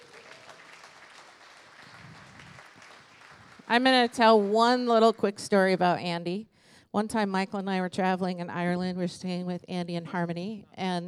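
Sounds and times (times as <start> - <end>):
faint audience applause greeting a guest speaker at an evening gathering: 0.0 - 4.7
speech: 3.7 - 11.0.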